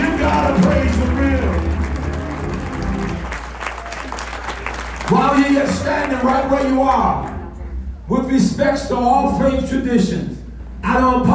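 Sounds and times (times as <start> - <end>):
audience clapping hands: 0.0 - 7.6
speech: 5.4 - 7.3, 8.1 - 11.3.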